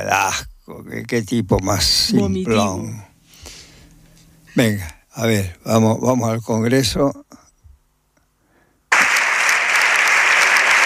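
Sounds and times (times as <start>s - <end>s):
speech: 0.0s - 3.1s, 4.6s - 7.3s
standing applause in the Congress: 8.9s - 10.8s.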